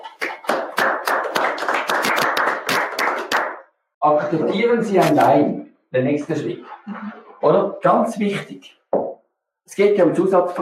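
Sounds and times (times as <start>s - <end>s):
crowd applauding: 0.0s - 3.7s
laughter: 4.0s - 4.8s, 6.4s - 7.7s
speech: 4.0s - 8.8s, 9.7s - 10.6s.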